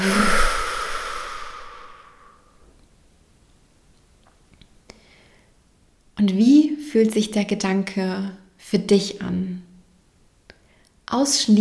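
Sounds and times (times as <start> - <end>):
loud exhalation: 0.0 - 2.6
speech: 7.0 - 9.7, 11.1 - 11.6.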